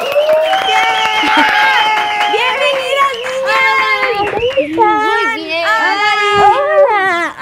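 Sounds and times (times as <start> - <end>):
small audience applause: 0.0 - 5.3
excited whoops and shouting: 0.0 - 7.3.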